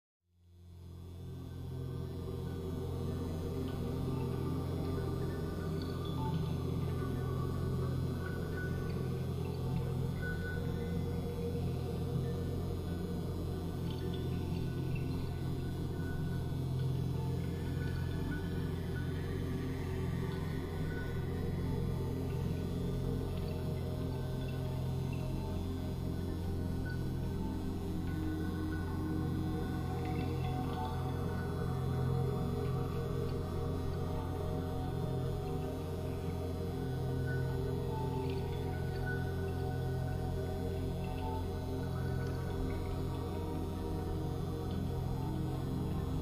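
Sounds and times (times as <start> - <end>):
drones: 0.7 - 46.1.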